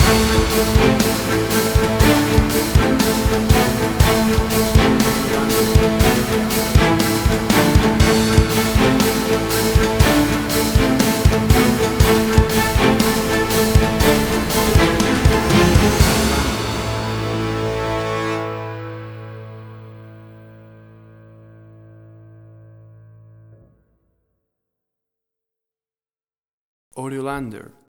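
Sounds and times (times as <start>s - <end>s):
big epic music: 0.0s - 21.1s.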